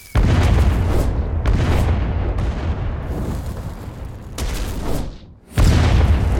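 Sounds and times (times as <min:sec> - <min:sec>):
TNT cannon explosions: 0:00.1 - 0:06.3.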